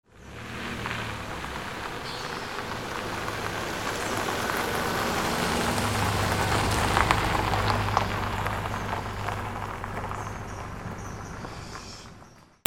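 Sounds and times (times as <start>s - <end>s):
cars: 0.0s - 12.6s.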